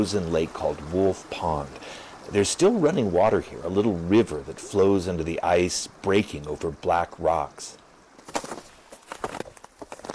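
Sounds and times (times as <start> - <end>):
speech: 0.0 - 7.8
snowshoe footsteps crunching across a frozen pond: 8.2 - 10.1.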